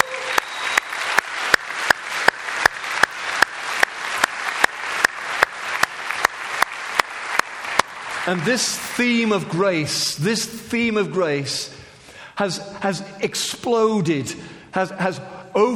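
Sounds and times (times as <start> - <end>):
audience clapping: 0.0 - 9.8
speech: 8.3 - 11.8, 12.4 - 15.7.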